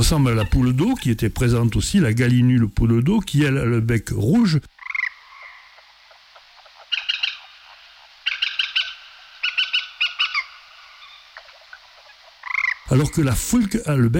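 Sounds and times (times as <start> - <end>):
speech: 0.0 - 4.7, 12.9 - 14.1
hiss: 0.0 - 14.1
water rail squealing calls: 0.2 - 1.1, 4.8 - 13.1.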